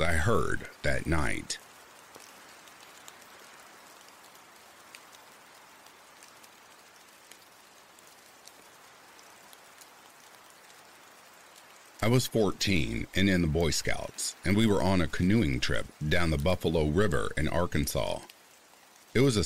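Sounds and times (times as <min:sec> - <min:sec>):
speech: 0:00.0 - 0:01.7, 0:12.0 - 0:18.3, 0:19.1 - 0:19.4
rain falling: 0:00.0 - 0:19.4.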